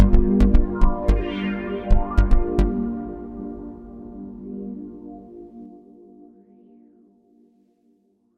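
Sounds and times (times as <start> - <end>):
synthesizer sounds with effects: 0.0 - 5.6.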